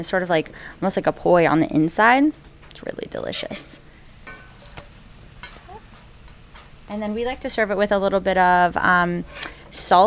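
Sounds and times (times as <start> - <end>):
speech: 0.0 - 3.8, 6.9 - 10.0
food frying in coconut oil until crispy: 3.6 - 10.0.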